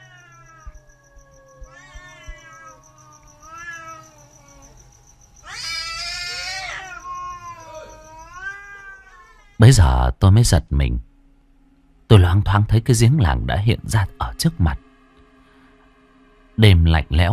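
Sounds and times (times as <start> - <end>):
two cats yowling and growling at each other: 0.0 - 9.8
speech: 9.6 - 11.1, 12.1 - 14.8, 16.6 - 17.3.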